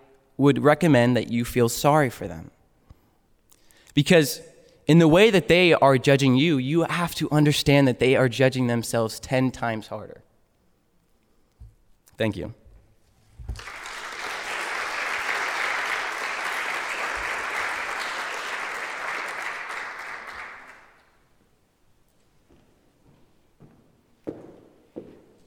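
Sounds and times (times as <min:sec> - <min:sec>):
speech: 0:00.4 - 0:02.6, 0:04.0 - 0:10.2, 0:12.2 - 0:12.6, 0:13.5 - 0:13.8
crowd applause: 0:13.6 - 0:21.1.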